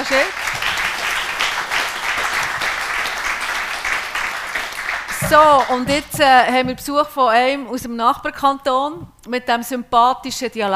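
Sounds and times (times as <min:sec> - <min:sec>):
sustained applause from a crowd: 0:00.0 - 0:05.8
speech: 0:05.3 - 0:10.7.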